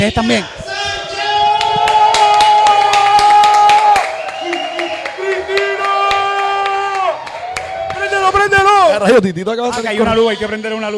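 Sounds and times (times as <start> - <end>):
speech: 0.0 - 0.6, 8.4 - 10.9
hand clapping applause: 1.5 - 8.9.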